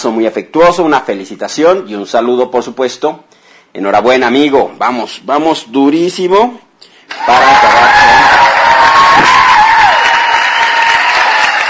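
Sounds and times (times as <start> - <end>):
speech: 0.0 - 8.5
applause: 7.1 - 11.6
crowd cheering: 7.1 - 11.6.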